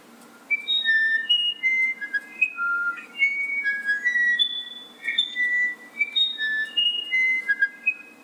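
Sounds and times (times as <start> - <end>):
Irapuru musician wren song: 0.5 - 8.2.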